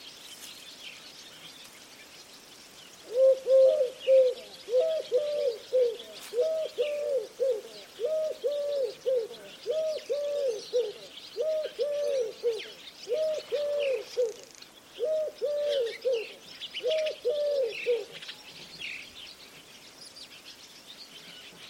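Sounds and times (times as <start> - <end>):
background hiss: 0.0 - 21.6
bird cooing: 3.0 - 18.2.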